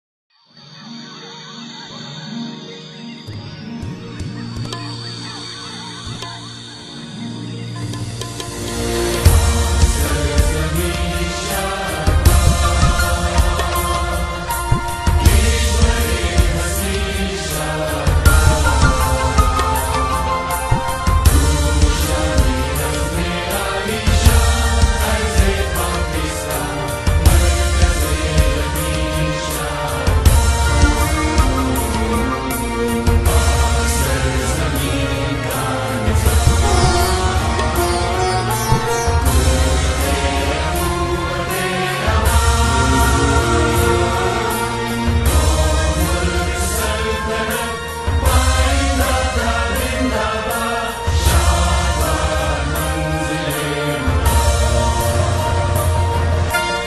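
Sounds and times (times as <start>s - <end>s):
national anthem: 8.8s - 56.8s.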